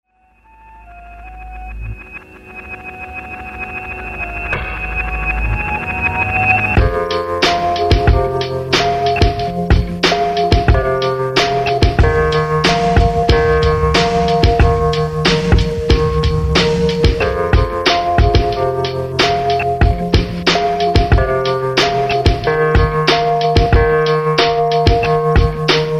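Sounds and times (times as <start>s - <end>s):
mystery noir whodunnit music: 0.5s - 25.9s.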